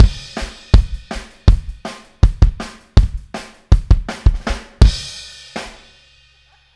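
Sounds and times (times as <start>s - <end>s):
outro kick drum at 162 BPM: 0.0s - 5.1s.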